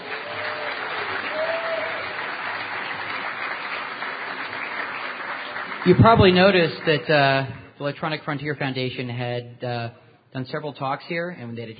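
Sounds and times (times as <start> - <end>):
audience applause: 0.0 - 7.1
speech: 5.8 - 11.7.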